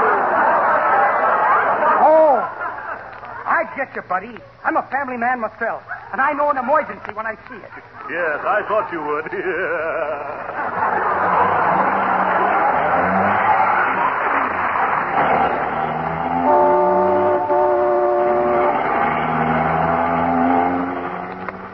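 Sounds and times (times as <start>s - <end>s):
laughter: 0.0s - 4.6s, 5.8s - 16.4s
speech: 3.8s - 12.1s
taxi cab engine roar speeding through traffic: 10.5s - 21.7s
car horns honking: 15.9s - 21.6s.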